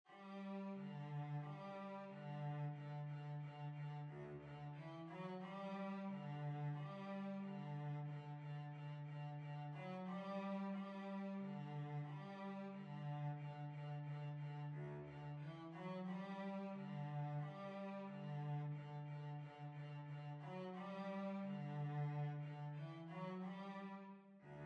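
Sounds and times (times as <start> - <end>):
violoncello: 0.0 - 24.6.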